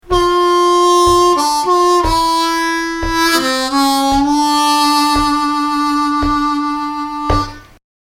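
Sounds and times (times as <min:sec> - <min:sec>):
harmonica lick: 0:00.0 - 0:07.8.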